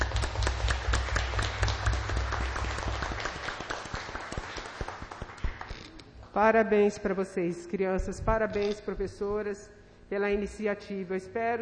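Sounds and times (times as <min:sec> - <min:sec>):
crowd applause: 0:00.0 - 0:05.8
speech: 0:06.4 - 0:11.6.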